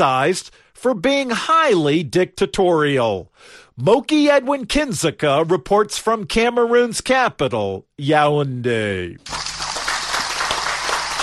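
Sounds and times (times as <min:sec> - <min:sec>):
speech: 0:00.0 - 0:09.4
fans applauding: 0:09.2 - 0:11.2.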